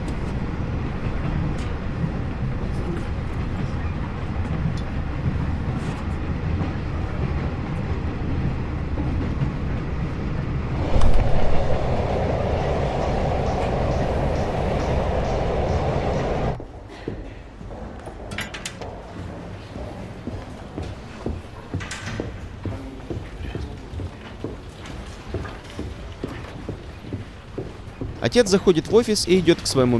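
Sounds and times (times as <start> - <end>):
passenger train rolling on rails: 0.0 - 29.9
sustained mid-pitched hum: 10.8 - 16.6
speech: 28.3 - 29.9.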